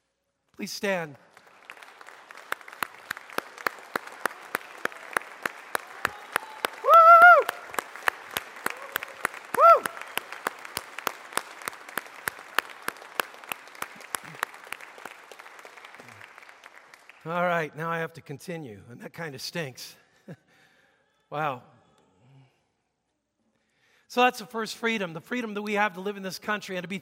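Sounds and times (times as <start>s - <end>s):
speech: 0.6s - 1.3s, 17.3s - 20.4s, 21.3s - 21.7s, 24.2s - 27.0s
audience applauding standing veterans: 0.8s - 17.7s
vocal whoops: 5.8s - 7.7s, 8.6s - 10.1s.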